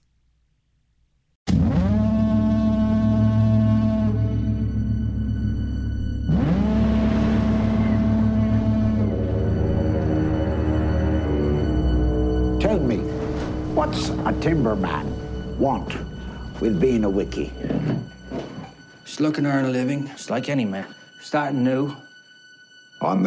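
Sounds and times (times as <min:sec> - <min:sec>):
deep droning horn-like blasts from a film trailer: 0:01.5 - 0:20.0
speech: 0:14.4 - 0:17.9, 0:19.2 - 0:22.0, 0:23.0 - 0:23.2.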